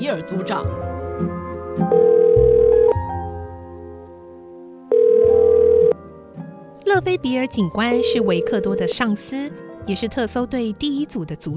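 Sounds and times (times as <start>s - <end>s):
speech: 0.0s - 2.1s, 7.0s - 11.5s
telephone ringing tones: 1.9s - 3.0s, 4.9s - 6.0s, 8.0s - 9.0s.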